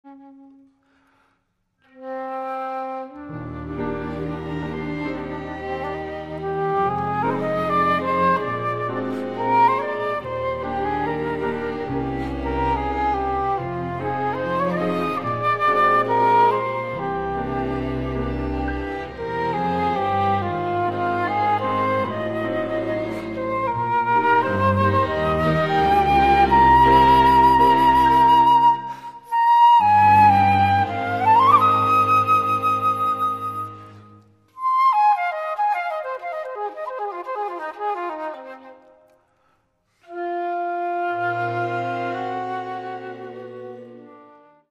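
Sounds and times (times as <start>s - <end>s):
flute solo: 0.0s - 1.2s, 1.8s - 44.7s.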